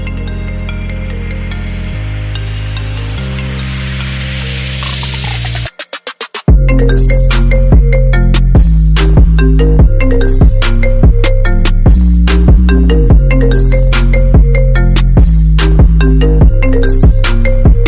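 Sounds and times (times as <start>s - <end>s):
trap beat: 4.7s - 17.8s.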